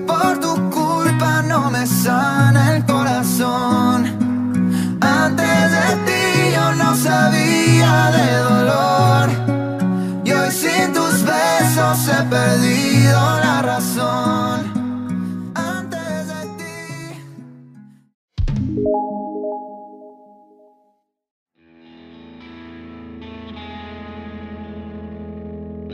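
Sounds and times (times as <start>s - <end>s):
pop song by a Colombian singer-songwriter: 0.0s - 17.4s, 18.8s - 20.7s.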